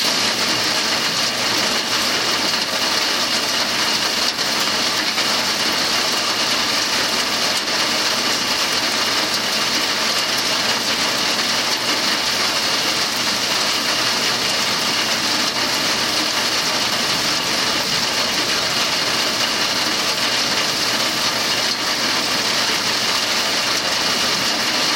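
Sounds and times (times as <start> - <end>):
rain recorded from a window: 0.0 - 24.9.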